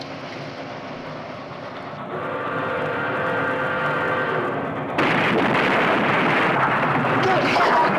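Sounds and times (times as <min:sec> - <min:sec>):
heavy train rumble: 0:00.0 - 0:07.9
head-on train collision crash: 0:05.0 - 0:07.9.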